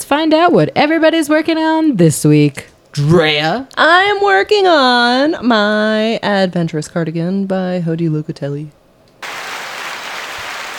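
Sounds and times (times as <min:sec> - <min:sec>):
speech: 0:00.2 - 0:08.8
applause: 0:09.2 - 0:10.7.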